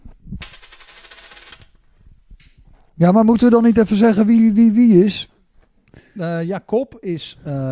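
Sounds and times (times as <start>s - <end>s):
coin tossed, faint bright metallic ringing: 0.4s - 1.8s
speech: 3.0s - 5.3s, 6.2s - 7.7s.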